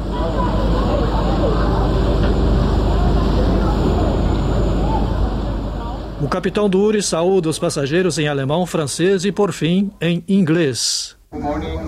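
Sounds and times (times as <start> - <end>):
paddle steamer engines starting up: 0.0 - 8.4
speech: 6.3 - 11.8.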